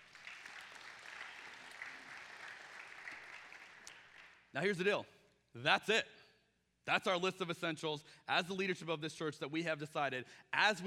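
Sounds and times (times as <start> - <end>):
audience applauding: 0.0 - 4.5
speech: 4.5 - 6.2, 6.9 - 10.8.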